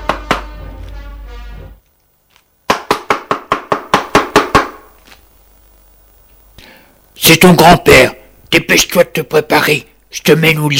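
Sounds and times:
knocking on a door: 0.0s - 0.6s, 2.7s - 4.8s
speech: 7.2s - 10.7s.

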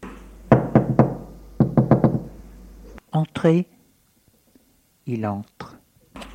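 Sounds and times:
knuckles knocking on a bedroom door: 0.5s - 2.3s
speech: 3.2s - 3.8s, 5.1s - 5.8s.

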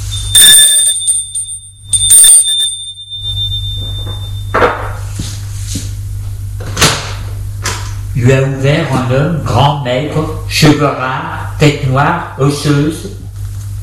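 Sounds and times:
doorbell ringing: 0.0s - 5.0s
low steady hum: 0.0s - 13.8s
speech: 8.2s - 13.2s.

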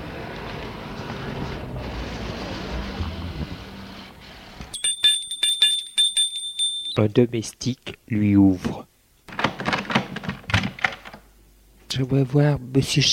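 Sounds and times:
low noisy rumble: 0.0s - 4.7s
doorbell ringing at the door of a private mansion: 4.8s - 7.0s
speech: 7.0s - 8.9s, 12.0s - 13.1s.

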